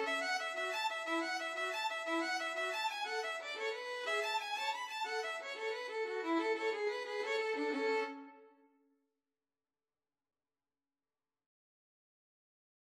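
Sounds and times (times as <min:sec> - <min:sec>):
Irish jig medley on two violins and cello: 0:00.0 - 0:08.4.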